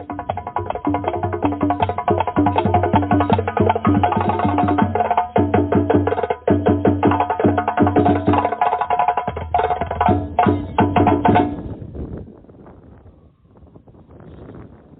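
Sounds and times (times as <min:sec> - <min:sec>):
fast dense drumming: 0:00.0 - 0:11.7.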